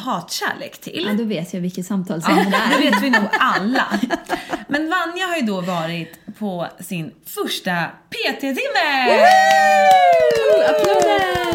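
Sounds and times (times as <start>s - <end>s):
speech: 0.0s - 11.5s
laughter: 2.3s - 4.8s, 10.1s - 11.5s
applause: 9.1s - 11.5s.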